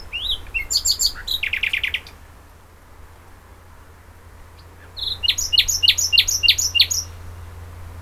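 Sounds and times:
common nightingale singing: 0.0s - 2.2s, 4.6s - 7.2s.

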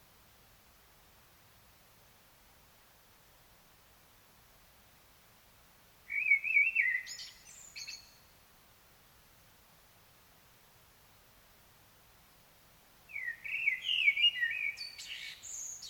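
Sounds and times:
common blackbird song: 6.1s - 8.3s, 13.1s - 15.8s.

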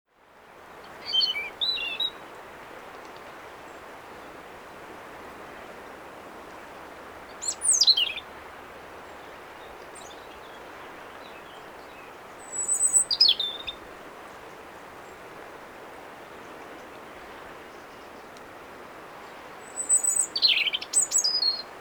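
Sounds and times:
European robin singing: 1.0s - 2.2s, 7.4s - 8.2s, 11.2s - 13.8s, 19.6s - 21.7s.

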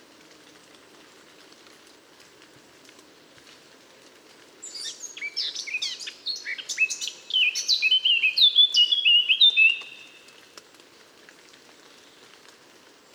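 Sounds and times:
steady background hiss: 0.0s - 13.1s
Eurasian blackcap song: 4.6s - 10.3s.

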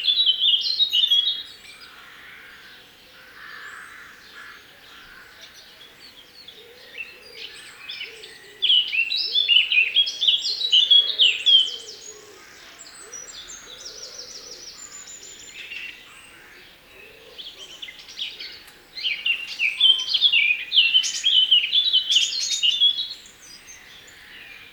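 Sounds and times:
Eurasian blackcap singing: 0.0s - 24.7s.

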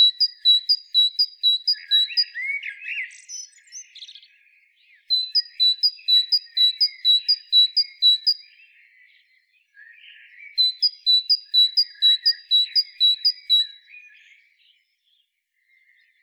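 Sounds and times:
great tit calling: 0.0s - 3.0s, 5.1s - 8.4s, 10.6s - 13.7s.

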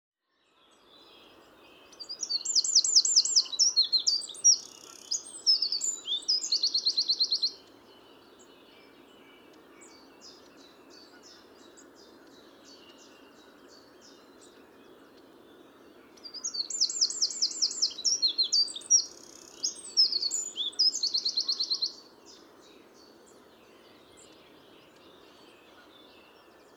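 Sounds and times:
hiss: 0.6s - 26.7s
Eurasian wren song: 1.8s - 22.5s.

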